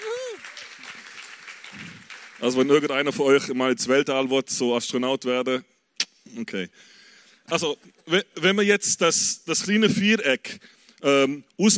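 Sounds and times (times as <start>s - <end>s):
audience applause: 0.0s - 2.9s
speech: 1.7s - 5.7s, 6.3s - 11.7s.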